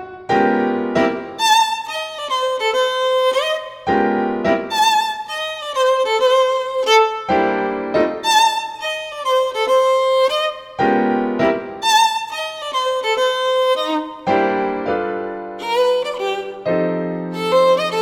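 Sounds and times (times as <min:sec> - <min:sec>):
boogie violin playing: 0:00.0 - 0:18.0.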